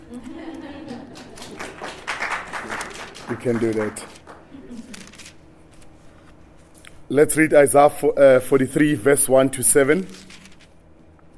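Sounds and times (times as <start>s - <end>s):
laughter: 0.0s - 5.0s
audience clapping hands: 0.9s - 4.7s
speech: 3.3s - 4.2s, 7.1s - 10.2s.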